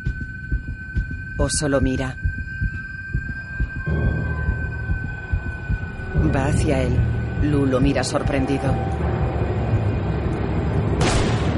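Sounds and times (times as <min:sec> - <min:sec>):
low rumbling background: 0:00.0 - 0:11.5
speech: 0:01.4 - 0:02.3, 0:06.2 - 0:09.1
gunshot in a scene of Fargo: 0:11.0 - 0:11.5.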